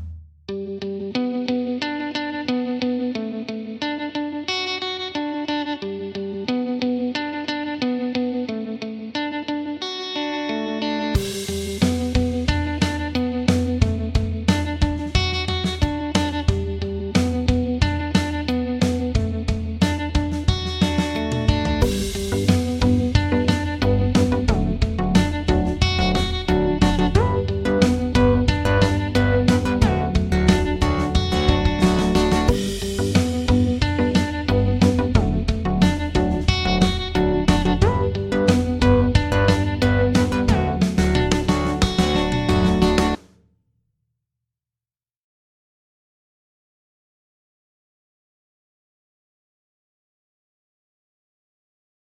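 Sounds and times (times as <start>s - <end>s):
guitar backing: 0.5s - 43.2s
simple melody: 21.0s - 43.2s.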